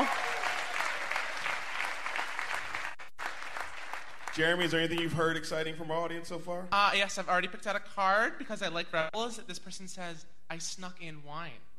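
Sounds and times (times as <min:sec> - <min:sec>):
audience applause: 0:00.0 - 0:05.4
speech: 0:04.4 - 0:11.7.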